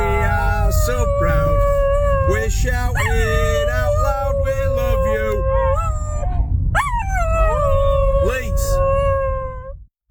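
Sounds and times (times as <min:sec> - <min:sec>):
dogs howling along to a song: 0:00.0 - 0:09.7.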